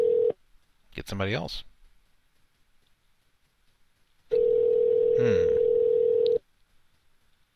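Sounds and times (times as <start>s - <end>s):
line noise crackle: 0.0s - 7.5s
speech: 1.0s - 1.7s, 5.2s - 5.5s
telephone ringing tone on call: 4.3s - 6.4s.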